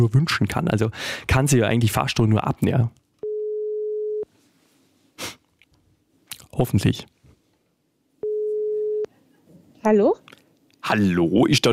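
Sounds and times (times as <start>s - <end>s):
speech: 0.0s - 3.0s, 6.6s - 7.1s, 9.8s - 11.7s
telephone ringing tone after dialing: 3.2s - 4.2s, 8.2s - 9.1s.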